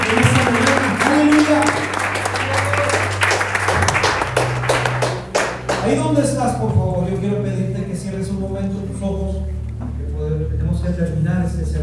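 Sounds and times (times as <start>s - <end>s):
audience applauding: 0.0s - 6.2s
faint crowd noise: 0.0s - 11.8s
low droning hum: 0.0s - 11.8s.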